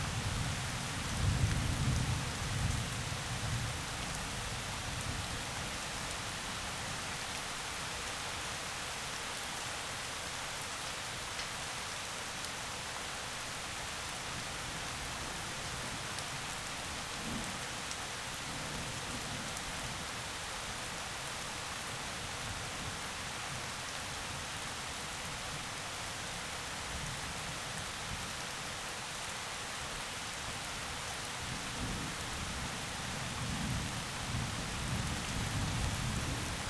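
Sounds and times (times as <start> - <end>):
heavy rain in forest: 0.0 - 36.6.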